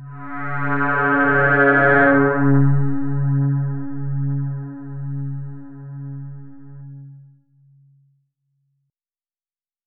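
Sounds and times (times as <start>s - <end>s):
synth ambient music: 0.0s - 7.5s.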